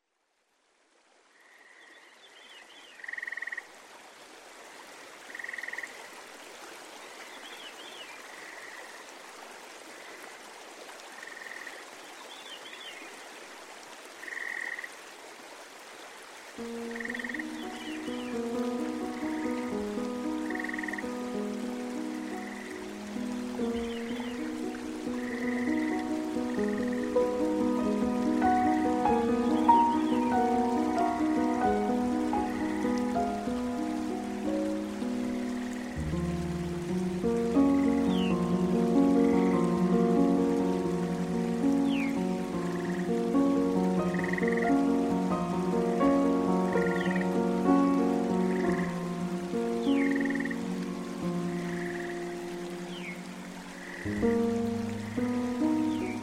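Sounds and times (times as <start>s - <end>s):
forest nature sounds: 0.0s - 56.2s
piano playing: 16.6s - 56.2s.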